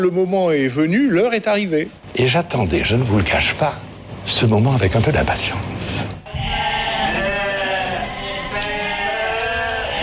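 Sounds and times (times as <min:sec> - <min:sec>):
speech: 0:00.0 - 0:06.6
flock of sheep bleating: 0:06.3 - 0:10.0.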